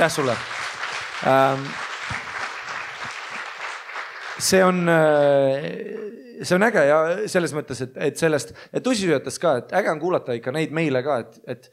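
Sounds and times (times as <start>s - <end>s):
speech: 0.0s - 0.6s, 1.2s - 1.8s, 4.4s - 11.7s
small group clapping: 0.0s - 5.3s.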